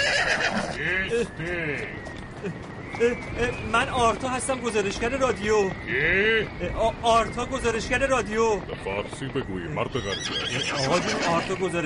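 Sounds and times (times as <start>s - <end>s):
horse neighing: 0.0s - 0.9s, 9.9s - 11.7s
hooves of a horse and rider clip-clopping: 0.0s - 11.8s
speech: 0.8s - 11.8s.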